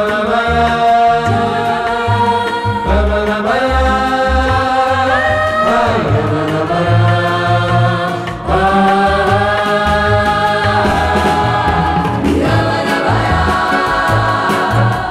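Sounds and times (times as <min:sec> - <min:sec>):
dub bossa nova music: 0:00.0 - 0:15.1.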